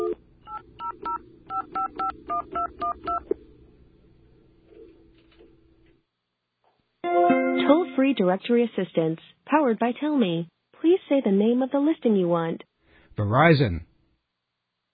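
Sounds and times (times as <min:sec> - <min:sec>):
telephone keypad dialing tones: 0:00.0 - 0:03.3
speech: 0:08.0 - 0:13.9.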